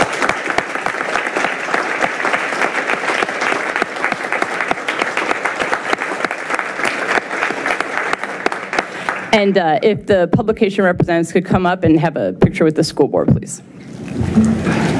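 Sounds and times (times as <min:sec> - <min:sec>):
audience applause: 0:00.0 - 0:09.3
speech: 0:09.4 - 0:14.8.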